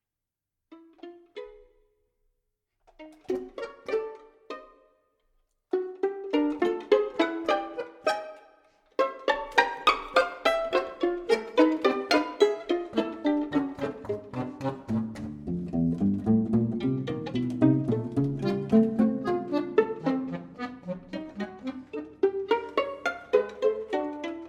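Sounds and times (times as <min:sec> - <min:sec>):
pizzicato polka: 0:00.7 - 0:02.1, 0:02.8 - 0:24.4.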